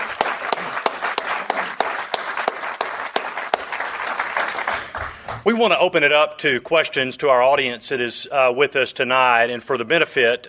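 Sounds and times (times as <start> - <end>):
round of applause: 0.0 - 5.5
speech: 5.4 - 10.4.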